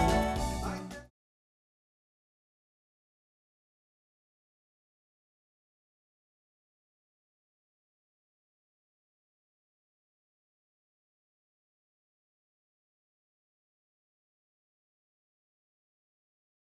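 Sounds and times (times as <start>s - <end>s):
steel drummer playing in Los Angeles: 0.0s - 0.9s.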